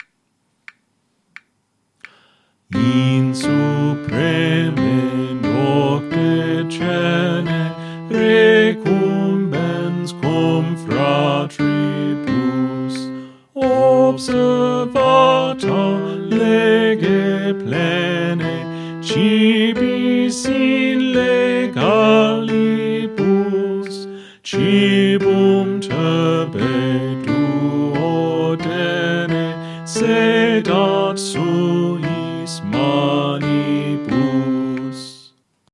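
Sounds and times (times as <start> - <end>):
soprano singing: 2.7 - 35.4.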